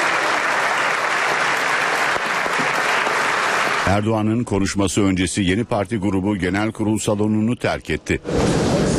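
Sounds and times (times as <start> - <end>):
parliament members applauding: 0.0 - 4.0
speech: 3.9 - 8.8.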